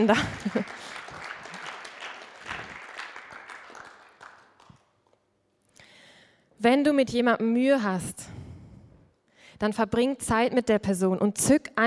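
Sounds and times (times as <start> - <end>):
speech: 0.0 - 0.8, 6.6 - 8.3, 9.6 - 11.8
audience applause: 0.0 - 4.8.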